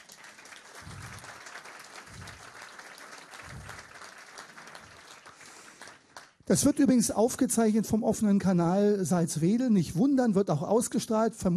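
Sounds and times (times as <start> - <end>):
audience applause: 0.0 - 6.4
speech: 6.5 - 11.5.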